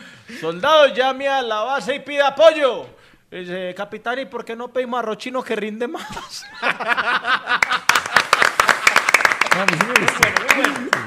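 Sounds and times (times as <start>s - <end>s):
speech: 0.3s - 7.8s, 9.6s - 11.0s
laughter and chuckles: 6.0s - 8.6s
crowd applause: 7.6s - 11.0s.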